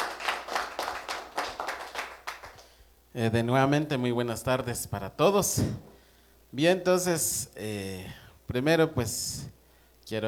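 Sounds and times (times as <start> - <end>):
audience applause: 0.0 - 2.6
speech: 3.1 - 5.9, 6.5 - 10.2.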